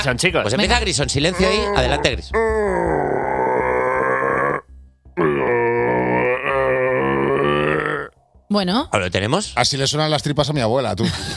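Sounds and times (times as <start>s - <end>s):
speech: 0.0s - 3.5s, 8.5s - 11.3s
man's voice imitating a red deer's rutting bellow: 1.2s - 8.1s.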